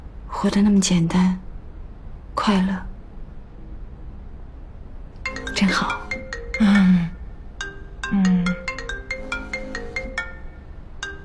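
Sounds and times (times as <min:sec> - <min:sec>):
speech: 0:00.3 - 0:01.4, 0:02.4 - 0:02.9, 0:05.6 - 0:06.0
phone ringtone with bright electronic melody: 0:05.3 - 0:11.2.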